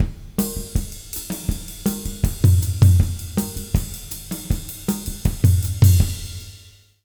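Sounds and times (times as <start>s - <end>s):
latin jazz drum loop: 0.0s - 6.9s.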